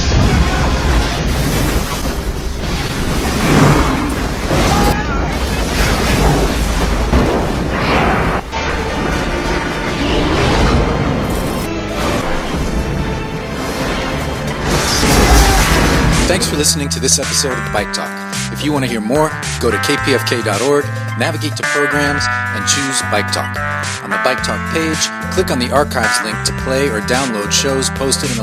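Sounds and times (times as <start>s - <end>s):
Michael Bay movie special effects explosions and booms: 0.0s - 17.0s
speech: 16.4s - 28.4s.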